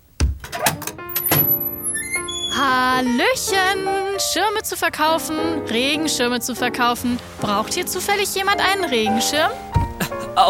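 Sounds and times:
door being opened with a solid thunk: 0:00.2 - 0:02.6, 0:09.7 - 0:10.1
long metallic door creak: 0:00.4 - 0:03.9
speech: 0:03.0 - 0:09.8.

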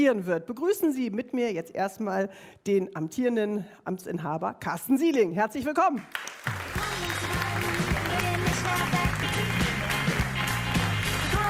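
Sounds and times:
speech: 0:00.0 - 0:06.8
audience applause: 0:06.1 - 0:11.4.

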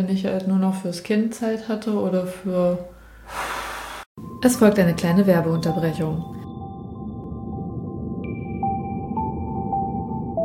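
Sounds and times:
speech: 0:00.0 - 0:03.5, 0:04.4 - 0:06.4
calm ambient music: 0:04.2 - 0:10.4.

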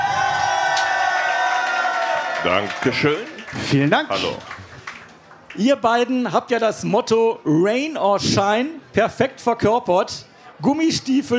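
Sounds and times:
cheering: 0:00.0 - 0:05.0
applause: 0:00.0 - 0:05.9
speech: 0:02.4 - 0:04.6, 0:05.6 - 0:11.3.

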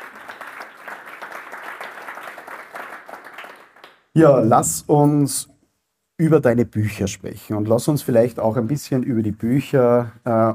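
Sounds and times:
short audience applause: 0:00.0 - 0:04.1
speech: 0:04.2 - 0:05.5, 0:06.2 - 0:10.5.

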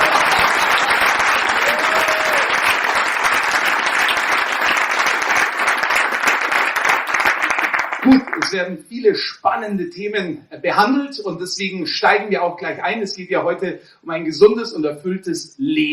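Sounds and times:
audience applause: 0:00.0 - 0:08.6
speech: 0:08.5 - 0:15.9.

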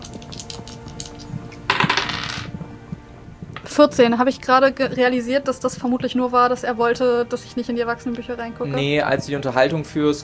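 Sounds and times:
dice being rolled: 0:00.0 - 0:02.6
speech: 0:03.8 - 0:10.2.

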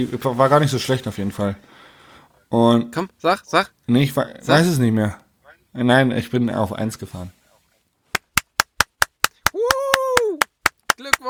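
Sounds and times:
speech: 0:00.0 - 0:01.9, 0:02.5 - 0:05.2, 0:05.8 - 0:07.4
hand claps: 0:08.1 - 0:11.2.

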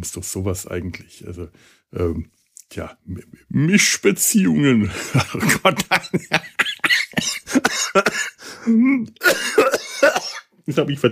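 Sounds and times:
speech: 0:00.0 - 0:09.4, 0:10.0 - 0:11.0
laughter: 0:04.8 - 0:08.1
person coughing after swallowing the wrong way: 0:05.2 - 0:10.5.

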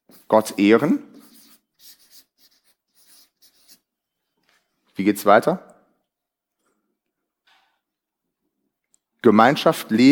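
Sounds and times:
writing on a board: 0:00.0 - 0:03.9
speech: 0:00.3 - 0:01.1, 0:05.0 - 0:05.7, 0:09.2 - 0:10.1.

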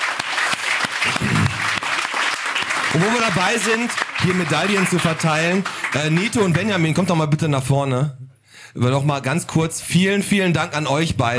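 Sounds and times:
audience applause as a man receives an honorary medal: 0:00.0 - 0:06.9
speech: 0:03.0 - 0:11.3.

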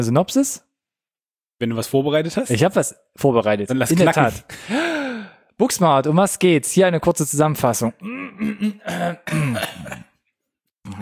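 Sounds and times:
speech: 0:00.0 - 0:00.7, 0:01.6 - 0:05.0, 0:05.6 - 0:10.1
person clearing throat: 0:08.0 - 0:10.2.

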